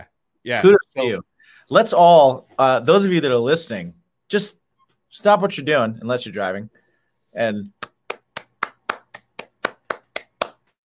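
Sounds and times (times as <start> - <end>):
speech: 0.4 - 6.8, 7.4 - 7.8
single person clapping slowly: 7.7 - 10.7.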